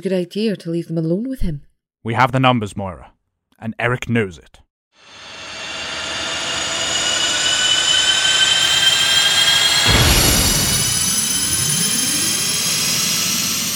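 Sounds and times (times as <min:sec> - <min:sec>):
speech: 0:00.0 - 0:05.3
jet aircraft powering up and taking off: 0:05.0 - 0:13.7.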